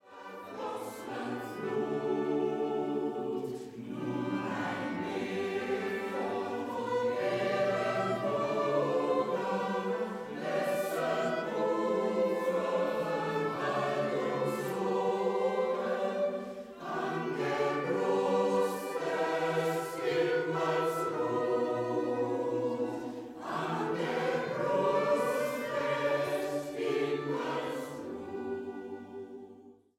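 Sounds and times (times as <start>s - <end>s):
Transylvanian choir singing a song: 0.0s - 29.9s.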